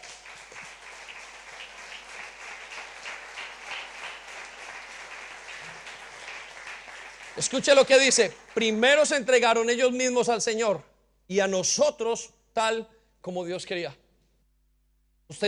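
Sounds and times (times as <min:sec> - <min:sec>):
audience applause: 0:00.0 - 0:09.2
speech: 0:07.4 - 0:14.0, 0:15.3 - 0:15.4.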